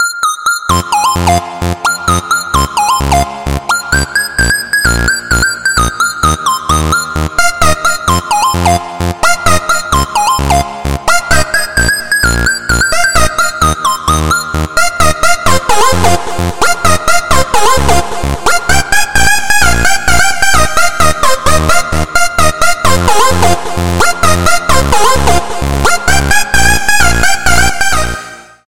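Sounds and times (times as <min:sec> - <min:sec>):
electro music: 0:00.0 - 0:28.6.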